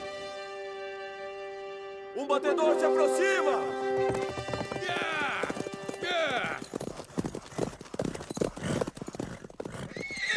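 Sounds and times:
speech: 2.2s - 4.3s
horse hooves clip-clopping: 3.8s - 10.3s.

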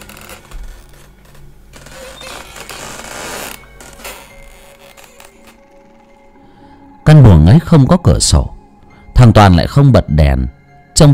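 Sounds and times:
unoiled door creaking slowly open: 0.0s - 6.4s
speech: 7.6s - 8.6s, 9.2s - 11.1s.

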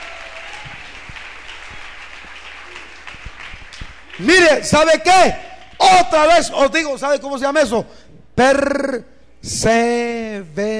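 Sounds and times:
audience applauding: 0.0s - 4.6s
speech: 4.2s - 10.7s.

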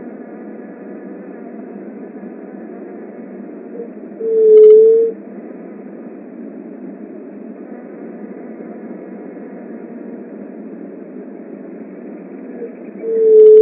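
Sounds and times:
Leptotila dove soft hollow hoot: 3.7s - 5.2s, 10.0s - 13.5s.

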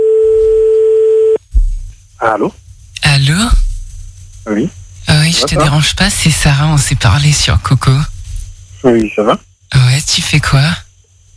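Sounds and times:
steady telephone tone while dialling on a radio call-in show: 0.0s - 1.4s
speech: 2.3s - 2.6s, 3.3s - 3.6s, 4.5s - 8.1s, 8.8s - 10.8s.

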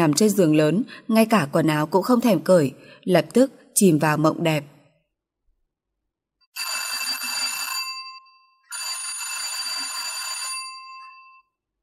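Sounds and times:
speech: 0.0s - 4.7s
doorbell ringing: 6.6s - 11.6s.

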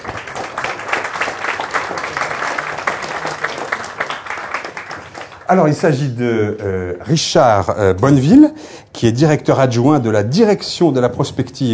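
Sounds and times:
audience applauding two guests at a talk on space exploration: 0.0s - 5.9s
speech: 5.5s - 11.7s.

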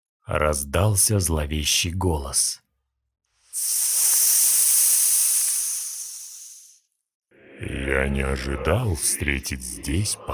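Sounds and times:
speech: 0.3s - 2.6s, 7.6s - 10.3s
giant black python hissing softly: 3.5s - 6.8s.

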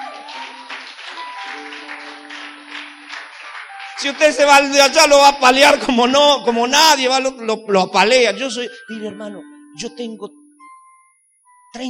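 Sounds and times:
audience applauding: 0.0s - 5.9s
long sustained musical tones: 0.2s - 11.8s
speech: 4.0s - 10.4s.

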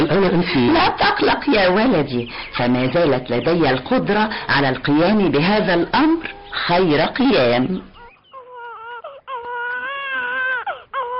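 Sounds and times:
speech: 0.2s - 7.9s
newborn baby crying: 5.4s - 11.1s.

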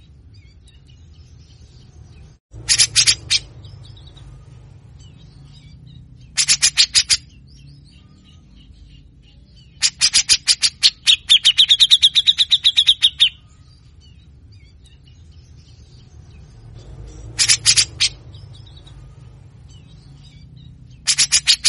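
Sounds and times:
Grey-cheeked Bulbul energetic rasping song: 0.0s - 21.6s.

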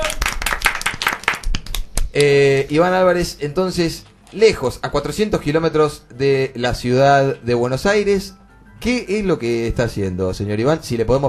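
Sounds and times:
hand clapping welcoming a guest onto a show: 0.0s - 2.4s
speech: 2.2s - 11.2s.

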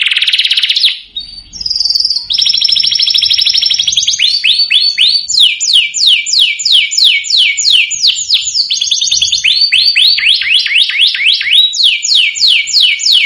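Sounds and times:
domestic canary song: 0.0s - 13.2s.

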